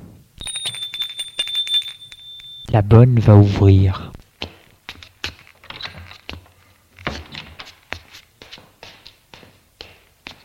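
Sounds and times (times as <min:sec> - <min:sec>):
doorbell ringing at front door: 0:00.4 - 0:02.8
speech: 0:02.8 - 0:04.1.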